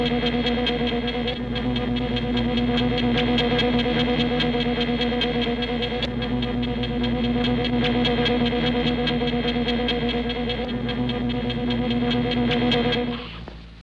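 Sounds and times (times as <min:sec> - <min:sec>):
power room background noise: 0:00.0 - 0:13.8.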